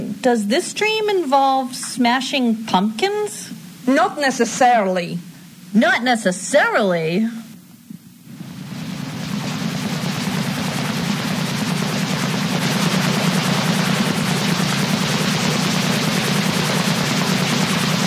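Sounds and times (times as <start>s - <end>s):
speech: 0.2s - 7.4s
military helicopter hovering overhead: 8.2s - 18.0s.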